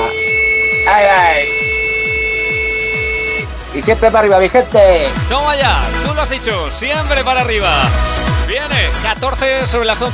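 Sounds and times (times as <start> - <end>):
long steady high-pitched beep tone: 0.0 - 3.6
rhythmic low thumping pulse: 0.0 - 3.8
speech: 3.8 - 10.1.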